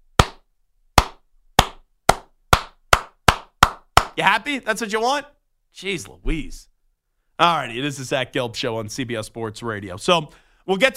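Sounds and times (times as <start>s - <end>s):
person slow clapping: 0.2s - 0.4s, 1.0s - 4.2s
speech: 4.2s - 6.7s, 7.4s - 10.9s.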